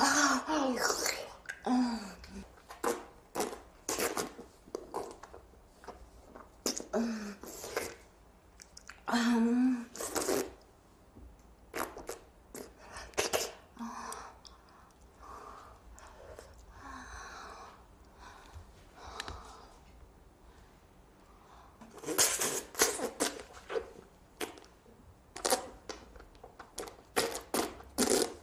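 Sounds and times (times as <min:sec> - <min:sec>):
married woman making oral sex sucking sounds: 0:00.0 - 0:10.7, 0:11.7 - 0:14.5, 0:21.8 - 0:24.8, 0:25.4 - 0:26.1, 0:26.7 - 0:28.4.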